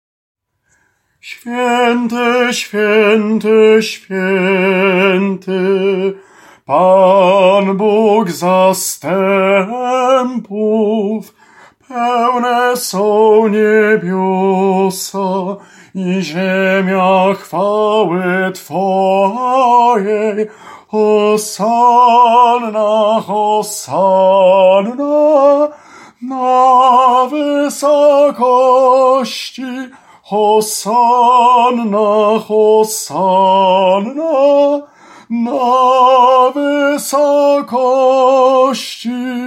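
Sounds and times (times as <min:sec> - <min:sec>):
tenor singing: 0:01.2 - 0:39.4.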